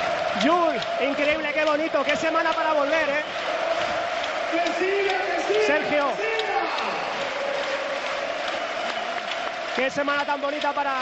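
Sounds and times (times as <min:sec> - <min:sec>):
basketball arena crowd ovation: 0:00.0 - 0:11.0
speech: 0:00.4 - 0:06.9, 0:09.8 - 0:11.0.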